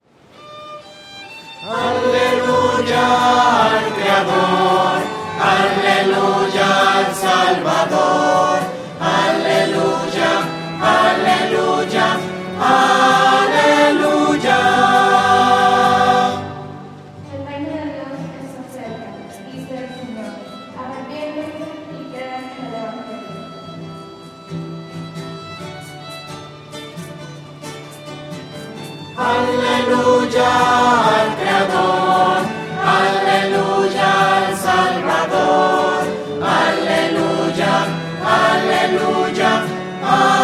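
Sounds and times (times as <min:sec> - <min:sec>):
voices singing hallelujah to the creator: 0:01.6 - 0:17.0, 0:29.2 - 0:40.4.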